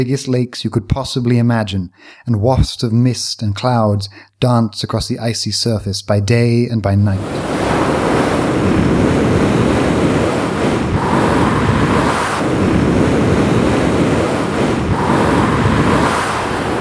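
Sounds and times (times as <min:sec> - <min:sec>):
speech: 0:00.0 - 0:07.6
wind whistling across the plain: 0:07.2 - 0:16.7.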